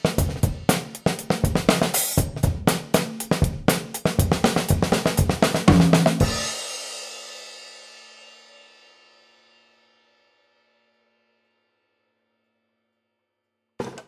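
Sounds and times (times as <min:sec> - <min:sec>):
rough drum mix: 0:00.0 - 0:10.5.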